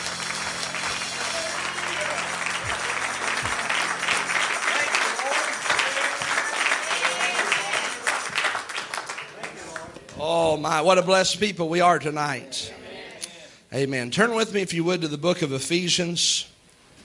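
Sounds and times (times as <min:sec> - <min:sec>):
congregation clapping hands in praise during a church service: 0:00.0 - 0:10.2
speech: 0:10.6 - 0:12.8, 0:13.7 - 0:16.5.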